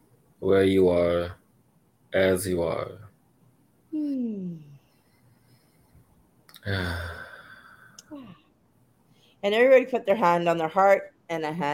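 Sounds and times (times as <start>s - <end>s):
speech: 0.4s - 1.4s, 2.1s - 3.1s, 3.9s - 4.7s, 6.6s - 7.2s, 9.4s - 11.7s
deep breathing with voiced sighs during a guided relaxation exercise: 6.6s - 8.4s.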